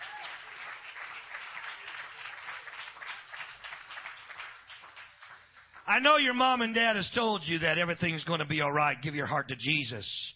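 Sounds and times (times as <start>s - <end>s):
crowd clapping: 0.0s - 6.8s
speech: 5.9s - 10.3s.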